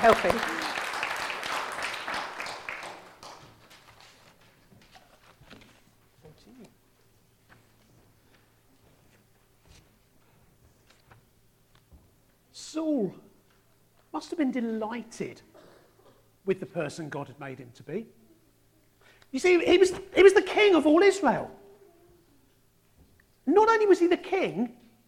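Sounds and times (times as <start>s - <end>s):
speech: 0.0s - 0.6s, 14.4s - 15.5s, 16.4s - 18.2s, 19.3s - 21.6s, 23.5s - 24.8s
round of applause: 0.0s - 4.5s.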